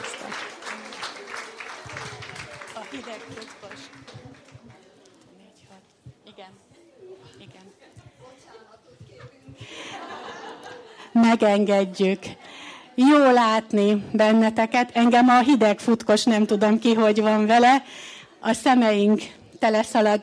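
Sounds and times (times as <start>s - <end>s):
audience applause: 0.0s - 4.8s
laughter: 9.6s - 11.2s
speech: 11.3s - 12.4s, 13.0s - 20.2s.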